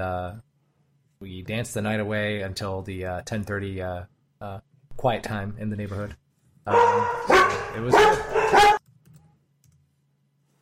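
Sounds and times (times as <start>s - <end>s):
speech: 0.0s - 0.5s, 1.2s - 8.8s
dogs barking excitedly: 6.7s - 8.8s.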